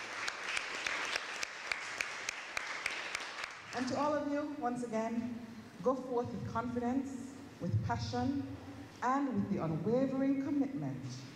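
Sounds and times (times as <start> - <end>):
audience applause: 0.0 - 3.7
speech: 3.8 - 11.3.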